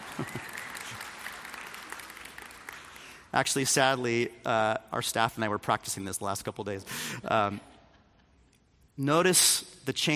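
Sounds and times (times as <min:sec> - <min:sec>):
people clapping: 0:00.0 - 0:03.3
speech: 0:03.3 - 0:07.7, 0:09.0 - 0:10.1.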